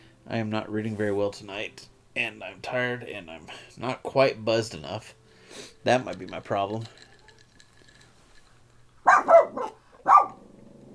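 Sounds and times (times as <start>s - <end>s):
speech: 0.3s - 7.1s
dog barking: 9.0s - 10.4s.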